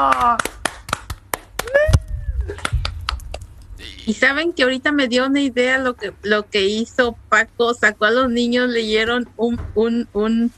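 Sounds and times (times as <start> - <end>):
group clapping: 0.0 - 4.2
speech: 4.1 - 10.5.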